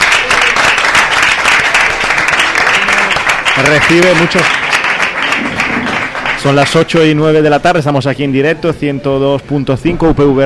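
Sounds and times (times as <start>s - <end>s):
radio studio audience applause greeting a football player: 0.0s - 7.2s
speech: 3.6s - 4.6s, 6.4s - 10.4s.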